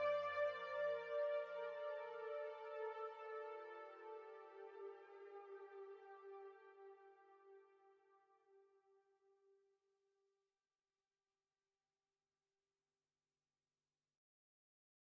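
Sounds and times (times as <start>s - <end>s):
ambient music with a beat: 0.0s - 7.5s.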